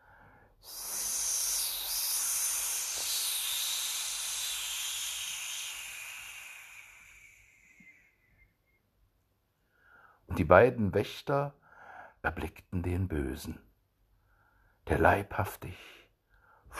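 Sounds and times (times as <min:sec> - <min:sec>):
piercing whistle: 0:00.6 - 0:09.0
speech: 0:10.4 - 0:11.6, 0:12.2 - 0:13.7, 0:14.9 - 0:16.0.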